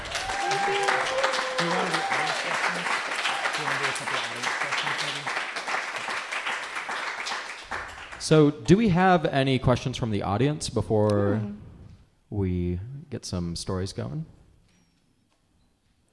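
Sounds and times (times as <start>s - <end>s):
voices calling out and cheering: 0.0s - 3.8s
audience applause: 0.0s - 8.3s
speech: 8.3s - 11.6s, 12.3s - 14.4s.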